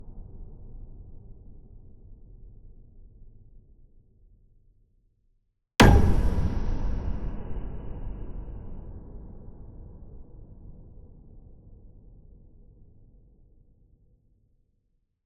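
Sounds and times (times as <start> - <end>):
dark impacts: 5.8 - 10.6.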